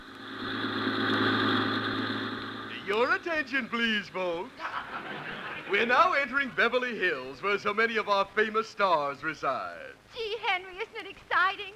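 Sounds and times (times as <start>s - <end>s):
free sightseeing bus engine droning on a city tour: 0.0s - 6.8s
speech: 3.0s - 11.7s
laughter: 4.2s - 7.6s.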